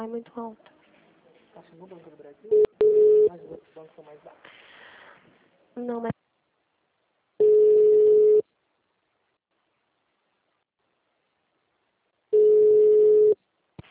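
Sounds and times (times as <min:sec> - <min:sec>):
speech: 0:00.0 - 0:00.7, 0:01.6 - 0:04.7, 0:05.8 - 0:06.2
telephone line tones on an unanswered call: 0:02.5 - 0:03.3, 0:07.4 - 0:08.4, 0:12.4 - 0:13.4.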